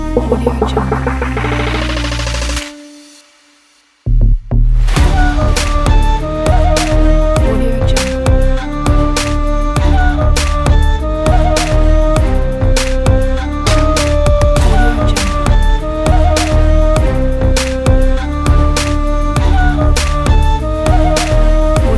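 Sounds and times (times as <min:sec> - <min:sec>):
Arabian hip hop trap music: 0:00.2 - 0:03.4, 0:05.0 - 0:21.9.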